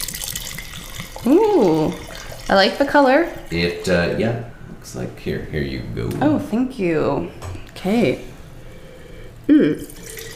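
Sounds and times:
red wine pouring into a wine glass: 0.0s - 4.1s, 9.8s - 10.3s
speech: 1.2s - 8.3s, 9.5s - 10.0s.

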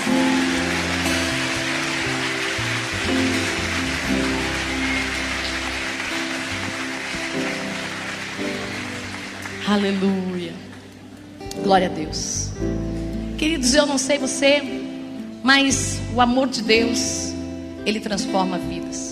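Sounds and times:
audience applauding: 0.0s - 11.1s
speech: 9.7s - 10.6s, 11.7s - 14.8s, 15.4s - 17.2s, 17.8s - 19.0s.

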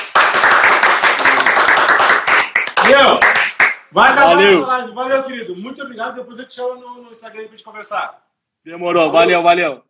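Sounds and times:
group round of applause: 0.0s - 3.9s
speech: 2.9s - 3.3s, 3.9s - 9.8s.

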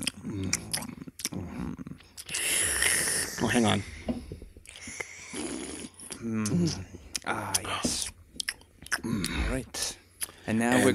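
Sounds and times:
chewing crackers: 0.0s - 3.0s, 4.6s - 9.4s
speech: 3.4s - 4.2s, 6.3s - 6.9s, 10.5s - 10.9s.

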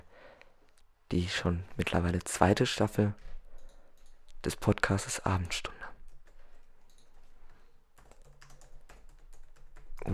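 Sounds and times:
speech: 1.2s - 3.4s, 4.4s - 5.7s
typing on a computer keyboard: 3.5s - 4.4s, 6.0s - 10.1s.

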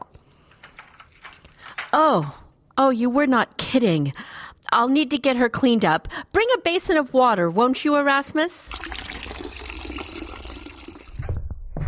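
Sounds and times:
keys jangling: 0.5s - 2.1s
speech: 1.9s - 8.8s.

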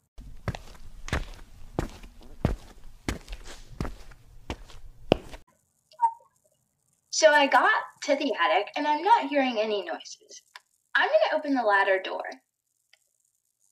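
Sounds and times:
heavy footsteps walking toward the attic: 0.2s - 5.4s
speech: 7.2s - 12.4s.

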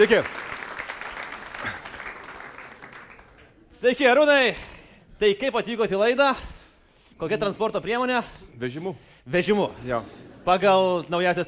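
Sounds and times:
speech: 0.0s - 0.5s, 3.8s - 6.5s, 7.2s - 11.4s
audience applause welcoming a guest on a show: 0.0s - 3.6s.

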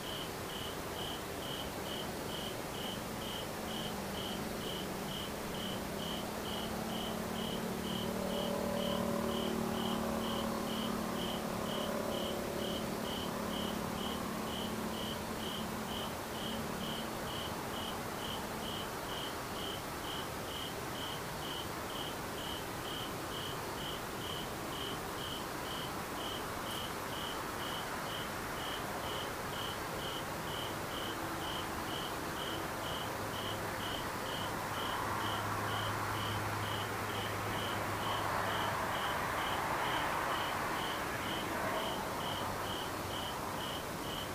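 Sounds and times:
insect chirping: 0.0s - 44.3s.

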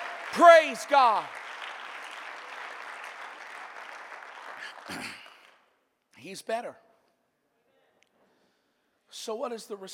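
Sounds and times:
audience clapping: 0.0s - 5.7s
speech: 0.4s - 1.4s, 4.9s - 5.2s, 6.2s - 6.8s, 9.2s - 9.9s.

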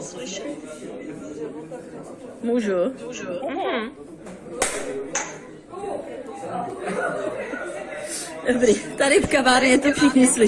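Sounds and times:
speech: 0.1s - 10.4s
hand clap: 4.6s - 5.4s
laughter: 6.6s - 9.0s.

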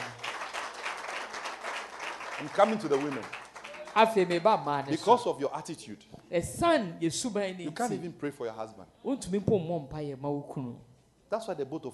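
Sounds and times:
crowd clapping: 0.0s - 4.8s
speech: 2.4s - 3.4s, 4.0s - 11.9s.

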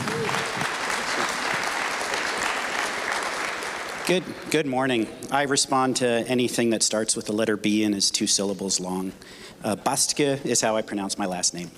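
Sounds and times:
audience applause welcoming a guest speaker at a Missions Sunday gathering: 0.0s - 4.2s
speech: 4.1s - 11.7s.

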